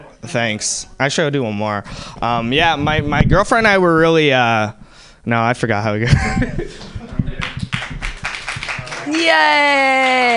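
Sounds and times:
speech: 0.2s - 6.9s, 9.2s - 10.3s
laughter: 6.0s - 7.7s
audience clapping: 6.8s - 10.3s.

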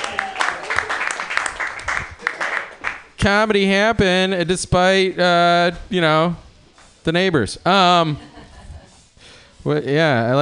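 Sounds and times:
audience round of applause: 0.0s - 3.1s
speech: 3.2s - 6.4s, 7.0s - 8.3s, 9.6s - 10.3s.

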